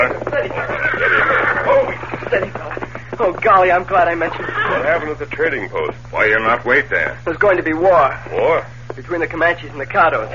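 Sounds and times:
speech: 0:00.0 - 0:01.1, 0:03.3 - 0:10.3
horse neighing as it is reined up, sound effect in a Western radio drama: 0:00.5 - 0:02.6, 0:04.2 - 0:05.2.

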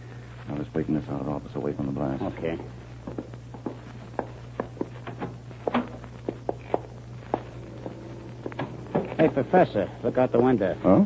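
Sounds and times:
constant low hum: 0:00.0 - 0:11.0
speech: 0:00.7 - 0:03.4, 0:09.2 - 0:11.0
footsteps in a hallway: 0:03.0 - 0:09.1.

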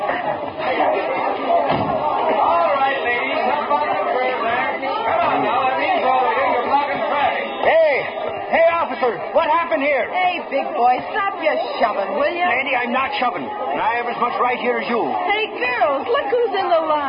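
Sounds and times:
crowd commotion on a city street: 0:00.0 - 0:17.0
dull thump: 0:01.7 - 0:02.0
speech: 0:09.4 - 0:17.0.

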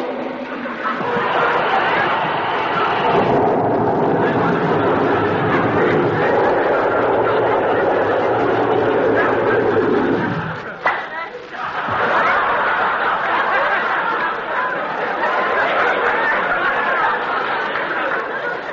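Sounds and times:
laughter: 0:00.0 - 0:18.7
soothing syrup fizzing in a glass of water: 0:01.0 - 0:10.8.

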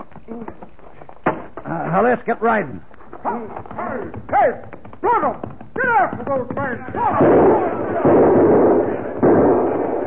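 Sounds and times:
speech: 0:01.9 - 0:09.0
gunshots from men firing at riders: 0:07.0 - 0:10.0.

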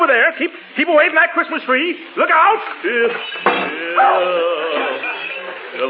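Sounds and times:
speech: 0:00.1 - 0:05.0
large clumsy dog whining indoors: 0:03.8 - 0:05.4
large clumsy dog barking indoors: 0:04.0 - 0:04.3.

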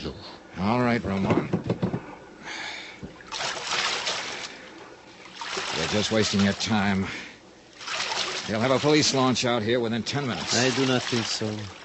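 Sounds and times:
speech: 0:00.0 - 0:01.6, 0:05.9 - 0:07.3, 0:08.5 - 0:11.8
wooden paddle splashing as a boat is rowed across a bay: 0:03.1 - 0:11.8.

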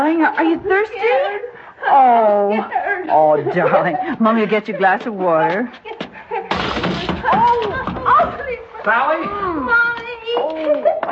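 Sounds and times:
speech: 0:00.1 - 0:06.0, 0:06.6 - 0:11.1
laughter: 0:01.0 - 0:05.2, 0:10.4 - 0:11.1
crash as someone trips over a child's toy and falls: 0:06.5 - 0:08.3.

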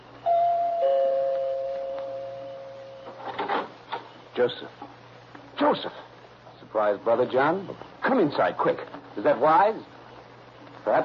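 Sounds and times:
doorbell ringing: 0:00.2 - 0:03.2
speech: 0:04.4 - 0:05.0, 0:05.6 - 0:06.1, 0:06.7 - 0:09.9, 0:10.8 - 0:11.0.

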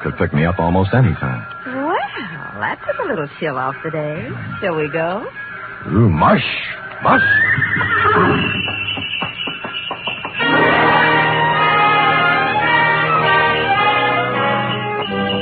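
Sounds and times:
speech: 0:00.0 - 0:01.5, 0:02.6 - 0:09.2
sleigh runners squeaking on snow: 0:07.0 - 0:15.3.

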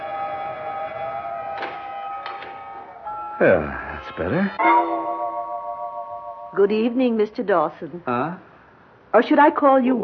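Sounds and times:
doors being closed: 0:00.3 - 0:04.9
speech: 0:03.4 - 0:05.1, 0:06.6 - 0:08.5, 0:09.1 - 0:10.0.

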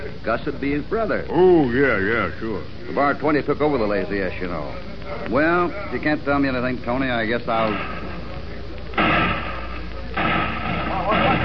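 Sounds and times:
speech: 0:00.2 - 0:08.0
gunshots in town in a staged western radio drama: 0:09.0 - 0:11.4.

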